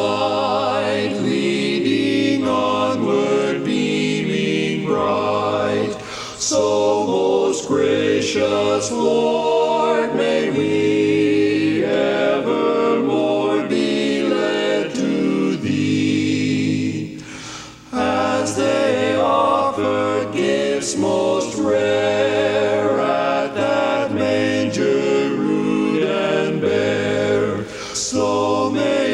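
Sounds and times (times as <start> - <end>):
baritone singing a cappella: 0.0 - 17.0, 17.9 - 29.1.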